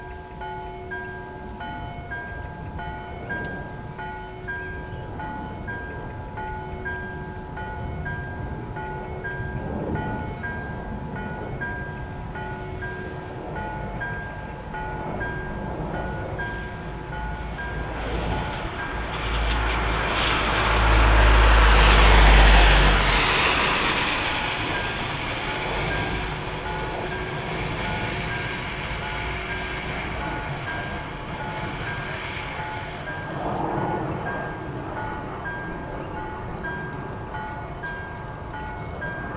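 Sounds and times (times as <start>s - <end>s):
cars: 0.0s - 39.3s
church bells ringing: 0.0s - 39.3s
rain: 0.0s - 39.3s
airplanes: 1.2s - 39.3s
thunder: 9.4s - 12.4s, 14.9s - 37.0s.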